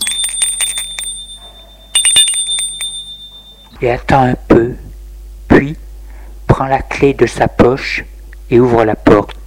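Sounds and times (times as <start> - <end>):
doorbell ringing in a metallic trill: 0.0 - 3.8
speech: 3.8 - 5.0, 5.6 - 5.8, 6.6 - 9.2.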